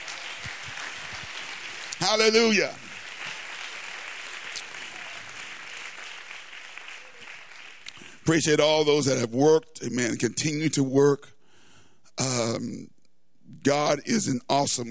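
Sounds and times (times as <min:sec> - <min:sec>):
audience clapping hands: 0:00.0 - 0:08.4
speech: 0:02.0 - 0:02.8, 0:08.3 - 0:11.3, 0:12.2 - 0:12.9, 0:13.5 - 0:14.8.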